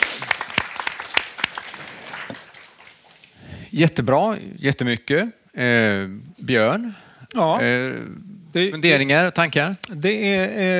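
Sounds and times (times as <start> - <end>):
audience applause: 0.0 - 3.3
speech: 3.8 - 10.7.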